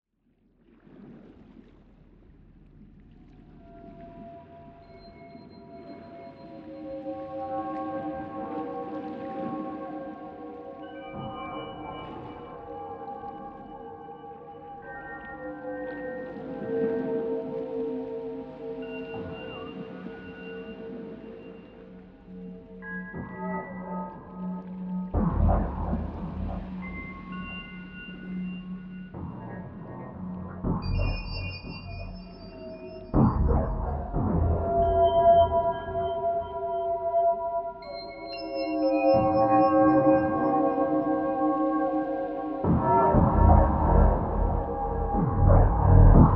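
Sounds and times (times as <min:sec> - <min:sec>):
music: 0:00.2 - 0:46.3.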